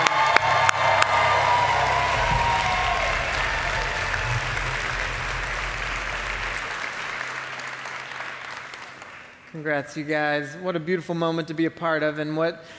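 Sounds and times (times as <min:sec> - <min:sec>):
audience applause at a church baptism service: 0:00.0 - 0:09.8
speech: 0:09.6 - 0:12.7.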